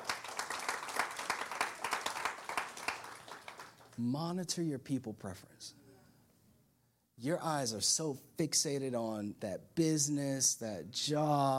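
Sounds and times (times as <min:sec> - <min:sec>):
crowd applauding: 0:00.0 - 0:04.0
speech: 0:04.0 - 0:05.8, 0:07.2 - 0:11.5.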